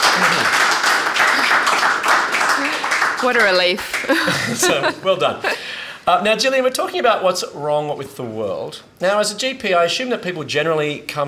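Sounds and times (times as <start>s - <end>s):
laughter: 0.0s - 0.6s, 3.8s - 5.8s
audience round of applause: 0.0s - 4.8s
speech: 3.2s - 11.2s.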